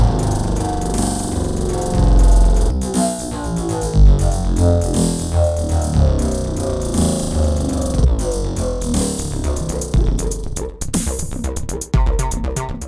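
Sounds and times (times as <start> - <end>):
beat through Eventide H910 with feedback: 0.0 - 12.8.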